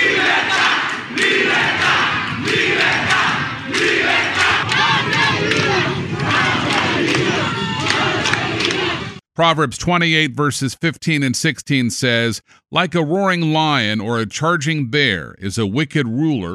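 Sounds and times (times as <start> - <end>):
protest crowd shouting and chanting in the streets: 0.0 - 9.2
speech: 9.4 - 16.5.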